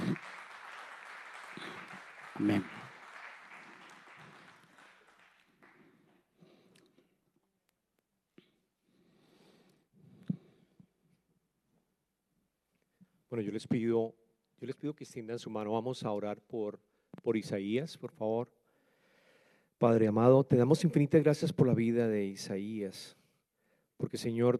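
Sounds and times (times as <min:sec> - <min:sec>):
audience applauding: 0:00.0 - 0:06.3
speech: 0:02.4 - 0:02.8, 0:13.4 - 0:18.6, 0:19.8 - 0:23.2, 0:24.0 - 0:24.5.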